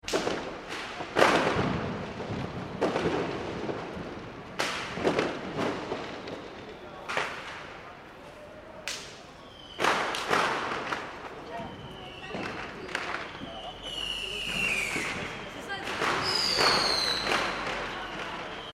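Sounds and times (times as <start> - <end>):
fireworks in an urban street: 0.0 - 18.7.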